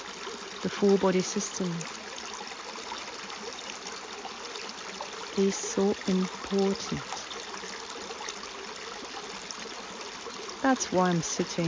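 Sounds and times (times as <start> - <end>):
small clear stream trickling and babbling: 0.0 - 11.6
speech: 0.6 - 2.0, 5.4 - 7.1, 10.6 - 11.6.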